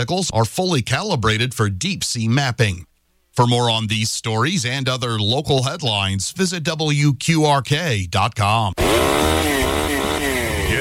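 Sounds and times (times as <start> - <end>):
speech: 0.0 - 10.7
old worn leaf blower engine running: 8.8 - 10.7.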